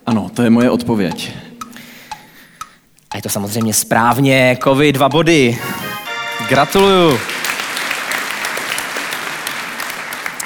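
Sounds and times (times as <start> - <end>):
speech: 0.3 - 1.4, 3.2 - 5.7, 6.4 - 7.3
audience applause: 7.3 - 10.4.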